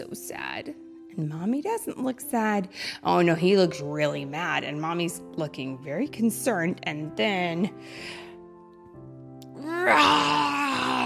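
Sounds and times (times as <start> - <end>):
speech: 0.0 - 8.2, 9.8 - 10.5
person's voice imitating a grizzly bear roar: 9.6 - 11.0.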